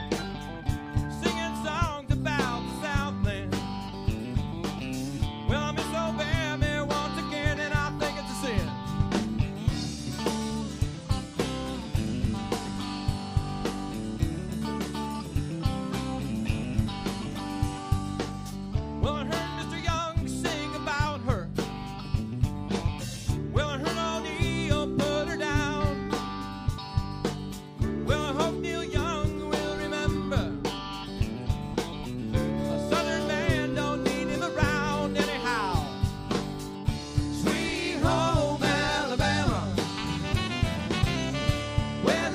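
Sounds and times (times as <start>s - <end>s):
cover band playing: 0.0s - 42.3s.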